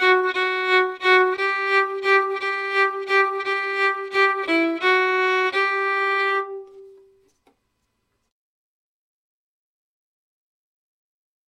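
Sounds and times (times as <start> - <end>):
violin waltz without double stops: 0.0 - 7.2.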